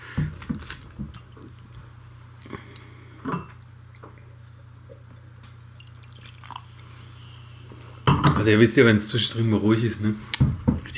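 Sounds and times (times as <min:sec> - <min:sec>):
glass clinking: 0:02.4 - 0:03.6
water dripping and splashing while rinsing out tasting glasses: 0:04.9 - 0:06.7
speech: 0:08.4 - 0:10.4.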